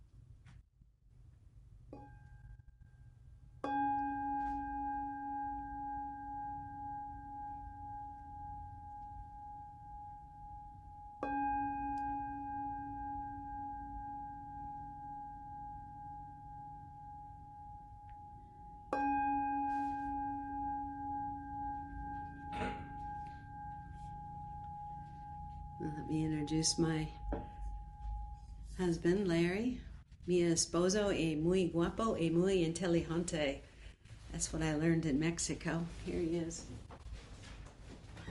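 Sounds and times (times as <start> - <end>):
meditation bell ringing: 2.0 - 29.2
speech: 26.5 - 27.2, 28.8 - 33.7, 34.3 - 36.8.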